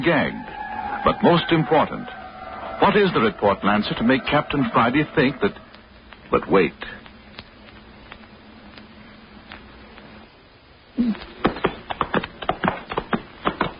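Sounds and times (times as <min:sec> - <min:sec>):
speech: 0:00.0 - 0:02.2, 0:02.8 - 0:05.6, 0:06.3 - 0:07.0
low steady hum: 0:00.0 - 0:13.7
horse hooves walking: 0:11.4 - 0:13.7.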